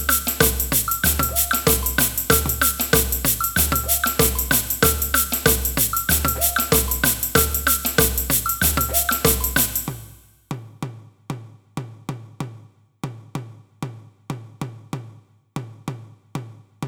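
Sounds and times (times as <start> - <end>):
samba band playing: 0.0 - 10.2
repinique drum in a samba band: 0.0 - 16.8.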